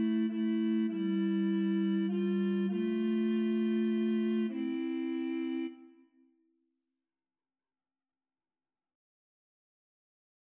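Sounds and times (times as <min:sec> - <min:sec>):
recorder trio playing a hymn: 0:00.0 - 0:05.8.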